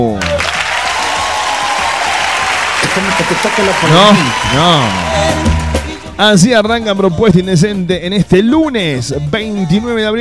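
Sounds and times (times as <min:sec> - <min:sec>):
applause: 0:00.0 - 0:06.1
speech: 0:03.2 - 0:05.5, 0:06.2 - 0:10.2.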